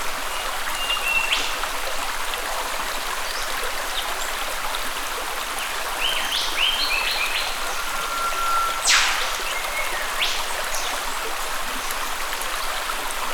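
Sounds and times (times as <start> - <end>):
steady rushing creek: 0.0 - 13.3
other birds chirping: 5.9 - 11.2
eastern whipbird call: 7.4 - 11.0.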